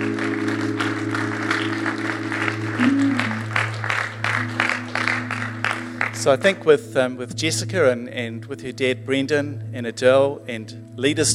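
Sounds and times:
crowd applauding: 0:00.0 - 0:06.7
speech: 0:06.2 - 0:11.3.

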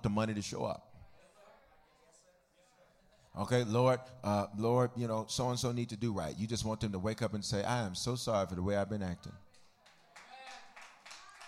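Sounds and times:
speech: 0:00.0 - 0:00.9, 0:03.4 - 0:09.4
group clapping in a steady rhythm: 0:09.8 - 0:11.4.

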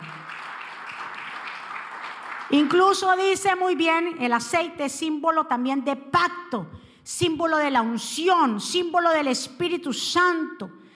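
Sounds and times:
audience applause: 0:00.0 - 0:02.8
speech: 0:02.5 - 0:10.8.

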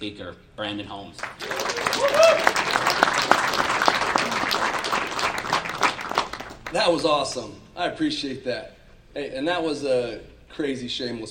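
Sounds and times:
speech: 0:00.0 - 0:03.6, 0:06.7 - 0:11.2
audience applause: 0:01.2 - 0:07.0.

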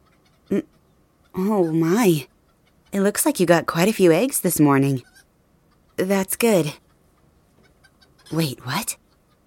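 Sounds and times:
chicken clucking: 0:00.0 - 0:03.1, 0:05.0 - 0:09.4
speech: 0:00.5 - 0:00.8, 0:01.4 - 0:02.3, 0:02.9 - 0:05.1, 0:06.0 - 0:06.8, 0:08.3 - 0:09.0.

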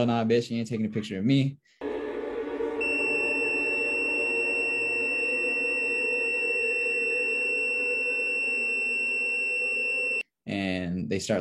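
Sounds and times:
speech: 0:00.0 - 0:01.8, 0:11.1 - 0:11.3
high-pitched screaming tone: 0:01.8 - 0:10.2.

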